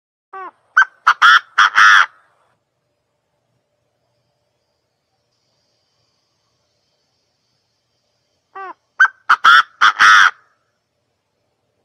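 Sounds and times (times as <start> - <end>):
partridge calling: 0.4 - 2.2, 8.5 - 10.5.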